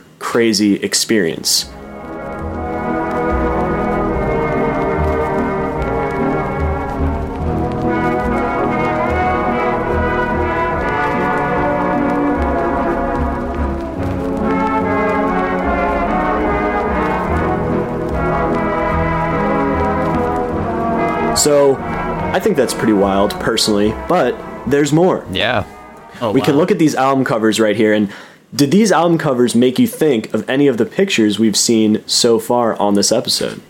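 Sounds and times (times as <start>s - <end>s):
speech: 0.3s - 1.8s, 22.4s - 33.6s
heavily distorted slowed-down music drone: 1.7s - 27.1s.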